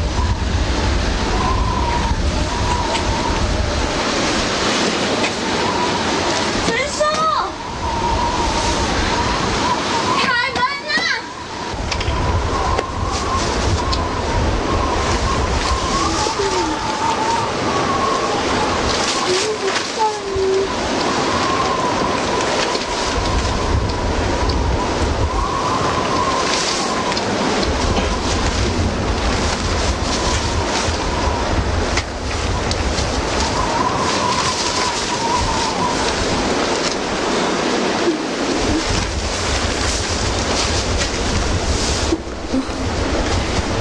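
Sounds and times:
heavy typhoon rain: 0.0 - 43.7
typhoon wind: 0.0 - 43.7.

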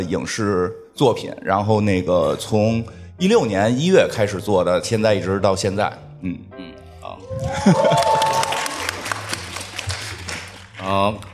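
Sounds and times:
speech: 0.0 - 6.7, 7.4 - 8.2, 10.9 - 11.3
audience applause: 7.3 - 11.3.

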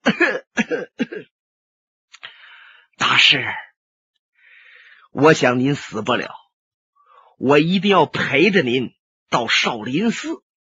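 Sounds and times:
person coughing hard: 0.0 - 1.3
speech: 3.2 - 3.6, 5.2 - 6.4, 7.4 - 10.4.

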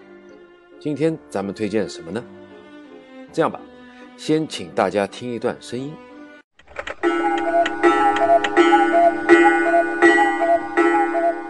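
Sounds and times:
speech: 0.8 - 2.4, 3.3 - 6.1
cuckoo clock mechanical clicks: 6.6 - 8.6
German cuckoo clock cuckoo call: 6.8 - 11.4.

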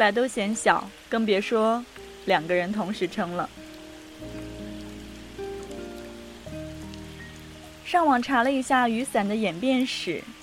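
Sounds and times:
speech: 0.0 - 3.6, 7.9 - 10.4
rain falling: 0.0 - 10.4
low musical tones: 0.9 - 9.6.

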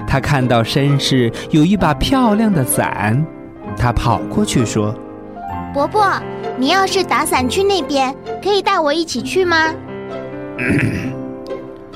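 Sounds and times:
speech: 0.1 - 5.0, 5.7 - 9.8, 10.6 - 11.2
man's dry cough: 10.6 - 11.2.

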